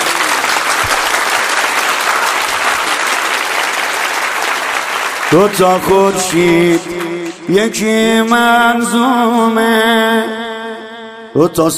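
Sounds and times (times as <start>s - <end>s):
audience clapping along to a devotional song: 0.0s - 8.8s
speech: 5.3s - 10.4s, 11.4s - 11.7s.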